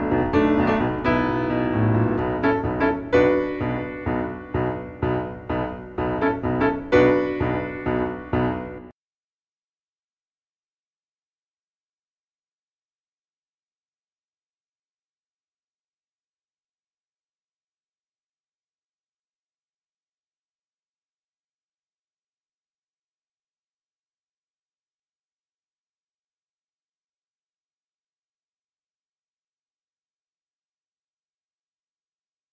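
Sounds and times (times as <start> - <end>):
instrumental hymn: 0.0 - 8.9.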